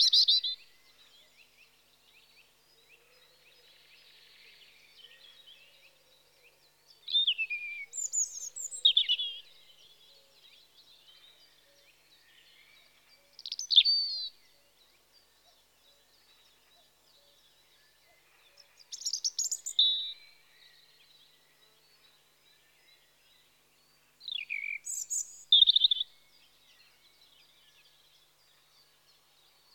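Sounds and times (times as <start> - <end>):
European robin Erithacus rubecula singing in spring: 0.0 - 2.6, 6.8 - 18.0, 18.6 - 21.2, 23.0 - 29.0.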